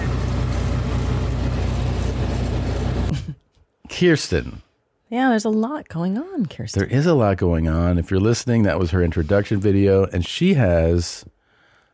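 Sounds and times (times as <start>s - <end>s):
car engine and road drone inside a car driven home in Mesa: 0.0s - 3.1s
speech: 4.0s - 11.3s.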